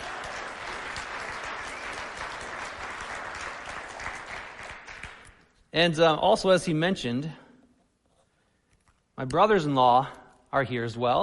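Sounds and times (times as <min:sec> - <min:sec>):
crowd applauding: 0:00.0 - 0:05.4
speech: 0:05.8 - 0:07.4, 0:09.2 - 0:11.2.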